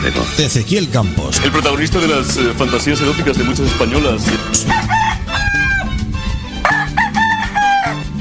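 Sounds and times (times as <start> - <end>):
speech: 0.0 - 5.2
rooster crowing: 4.6 - 6.0, 6.6 - 8.1.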